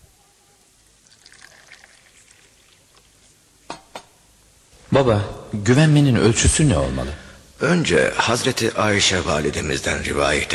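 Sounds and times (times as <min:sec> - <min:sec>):
tea pouring into a glass: 0:01.0 - 0:03.3
speech: 0:05.0 - 0:10.5.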